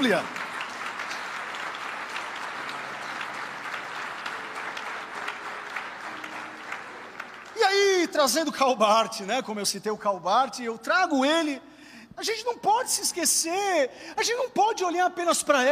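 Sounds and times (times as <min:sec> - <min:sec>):
speech: 0:00.0 - 0:00.4, 0:08.1 - 0:15.6
audience applauding: 0:00.0 - 0:08.7.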